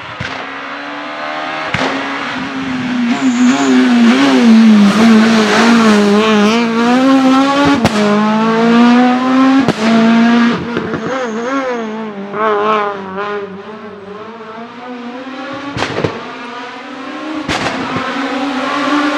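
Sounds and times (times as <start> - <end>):
Renault Clio S1600 rally car loud backfires: 0.0 - 0.7, 1.4 - 11.3, 15.5 - 16.5, 17.4 - 18.2
Renault Clio S1600 engine accelerating: 0.0 - 19.1.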